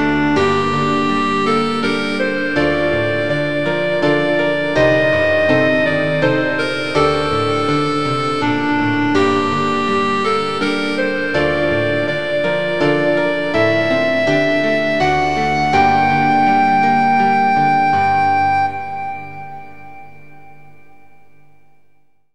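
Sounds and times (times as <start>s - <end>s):
clarinet playing an elegy: 0.0s - 20.9s.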